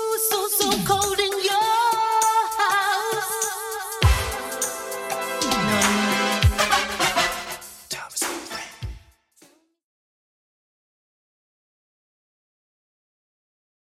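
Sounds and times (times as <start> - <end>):
80s beat at 100 bpm: 0.1 - 9.1.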